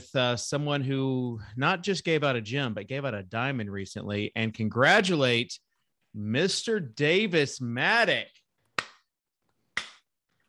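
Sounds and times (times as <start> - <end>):
speech: 0.1 - 8.4
slow clap: 8.7 - 9.1, 9.7 - 10.2.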